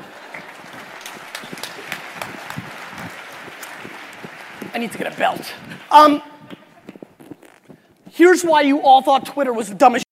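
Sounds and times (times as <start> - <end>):
audience applause: 0.0 - 5.9
speech: 4.8 - 6.3, 8.2 - 10.0.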